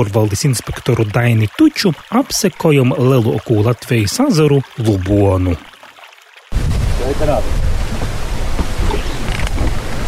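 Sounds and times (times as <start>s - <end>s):
speech: 0.0s - 5.7s, 7.1s - 7.6s
wind blowing over lake buffeting the microphone: 6.5s - 10.0s.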